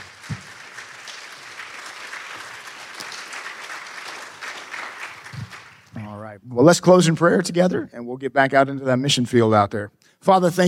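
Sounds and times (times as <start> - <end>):
crowd applauding: 0.0 - 6.1
speech: 6.5 - 10.6.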